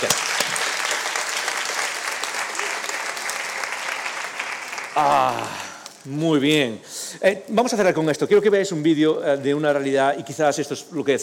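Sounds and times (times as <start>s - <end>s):
audience applause: 0.0s - 5.9s
speech: 5.0s - 11.2s.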